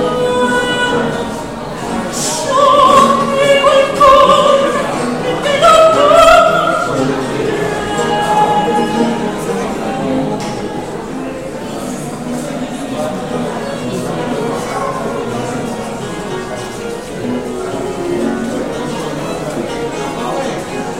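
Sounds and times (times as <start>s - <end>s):
loud soprano singing: 0.0s - 11.3s
baroque musicians playing: 0.0s - 20.9s.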